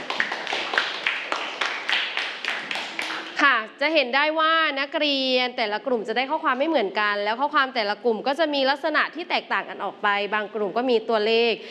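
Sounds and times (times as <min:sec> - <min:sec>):
students clapping for themselves: 0:00.0 - 0:03.6
speech: 0:03.8 - 0:11.6.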